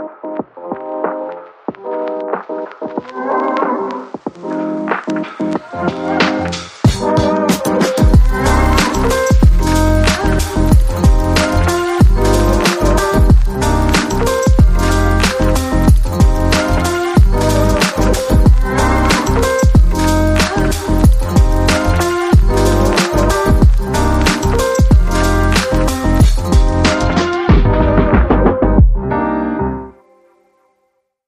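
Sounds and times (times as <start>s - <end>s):
jazzy abstract beat: 0.0s - 29.2s.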